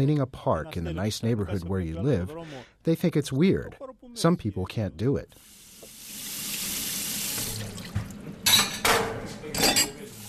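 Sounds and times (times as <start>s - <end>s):
speech: 0.0s - 5.6s
tap water running into a sink: 5.4s - 8.6s
dishes being handled and rinsed: 7.4s - 10.2s.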